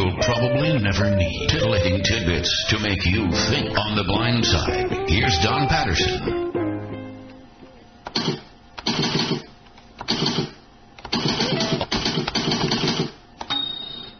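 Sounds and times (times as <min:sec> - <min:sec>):
speech: 0:00.3 - 0:06.4, 0:08.2 - 0:08.4
manual typewriter typing: 0:10.0 - 0:13.6.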